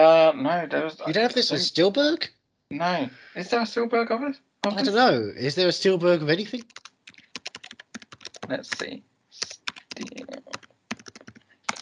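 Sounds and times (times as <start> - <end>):
speech: 0.0 - 6.8, 8.5 - 10.1
typing on a computer keyboard: 6.5 - 11.8.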